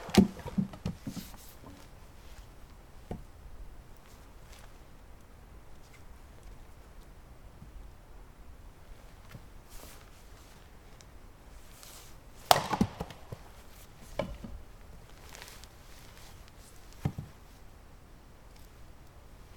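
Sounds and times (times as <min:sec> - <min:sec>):
splitting firewood in Banshu forest: 0:00.0 - 0:02.0, 0:12.4 - 0:17.2.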